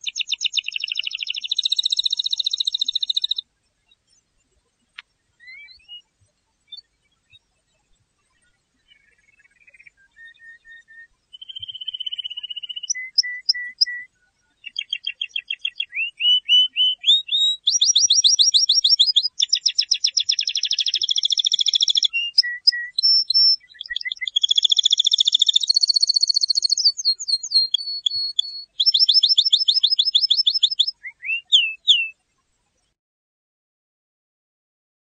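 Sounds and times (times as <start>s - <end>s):
canary song: 0.0s - 33.0s.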